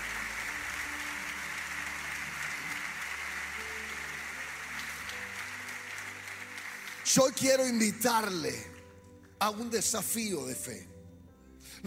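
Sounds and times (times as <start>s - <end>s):
audience applause: 0.0s - 8.4s
speech: 7.1s - 8.7s, 9.4s - 10.9s.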